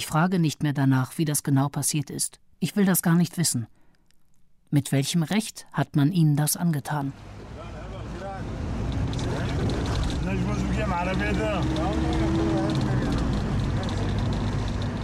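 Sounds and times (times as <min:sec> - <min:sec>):
speech: 0:00.0 - 0:03.8, 0:04.7 - 0:07.4, 0:10.3 - 0:12.2
car engine rumble driving across Qamishli: 0:07.1 - 0:15.0
road noise: 0:07.1 - 0:15.0.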